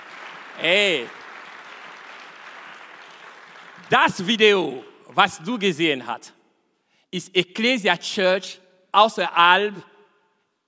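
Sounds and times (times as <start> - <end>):
church congregation applause as members welcome one another: 0.0 - 4.6
speech: 0.6 - 1.2, 3.9 - 6.4, 7.1 - 9.9.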